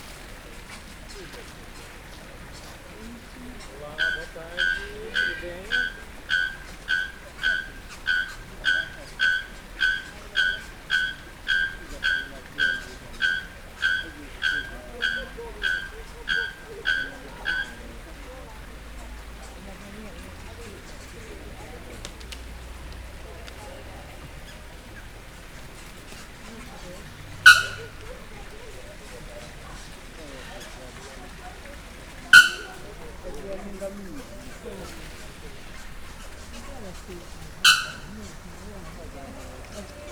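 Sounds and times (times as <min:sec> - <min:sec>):
bird whistling in a bird park: 0:03.6 - 0:18.1, 0:24.4 - 0:28.8, 0:32.1 - 0:40.1.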